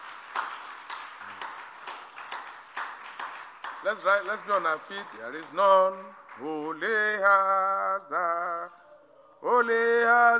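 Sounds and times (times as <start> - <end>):
audience clapping: 0.0 - 8.3
speech: 3.8 - 8.8, 9.4 - 10.3.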